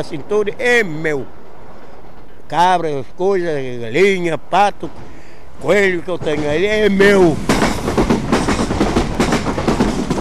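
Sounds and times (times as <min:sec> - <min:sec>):
speech: 0:00.0 - 0:01.4, 0:02.5 - 0:07.5
train rolling past on railway tracks: 0:00.0 - 0:10.1
train wheels clacking over rail joints: 0:04.9 - 0:10.1.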